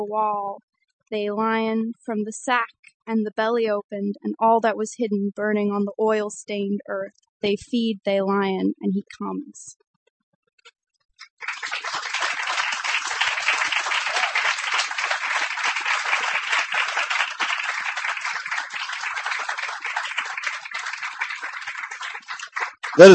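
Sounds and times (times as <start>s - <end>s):
speech: 0.0s - 9.9s, 23.0s - 23.1s
audience applause after a poetry reading: 11.2s - 23.1s.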